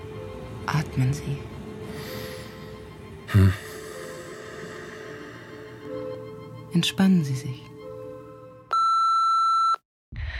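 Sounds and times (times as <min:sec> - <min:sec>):
speech: 0:00.7 - 0:01.6, 0:03.3 - 0:03.7, 0:06.8 - 0:07.7
telephone beeping: 0:08.7 - 0:09.8.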